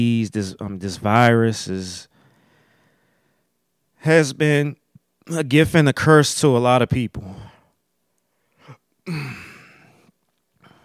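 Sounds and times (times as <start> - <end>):
speech: 0.0 - 2.1, 4.0 - 7.5, 9.1 - 9.5
person burping: 9.1 - 9.9.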